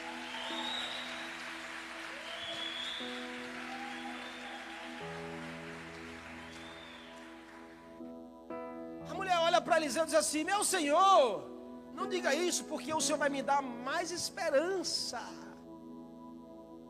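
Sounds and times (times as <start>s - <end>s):
faint rising whistle-like cries: 0.0s - 7.5s
audience applauding: 0.0s - 8.0s
sustained keyboard chords: 0.0s - 16.8s
speech: 9.6s - 15.4s.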